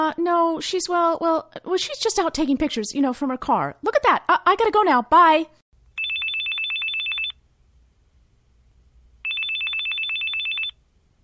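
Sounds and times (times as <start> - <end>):
speech: 0.1 - 5.6
telephone ringing: 6.0 - 7.4, 9.2 - 10.8.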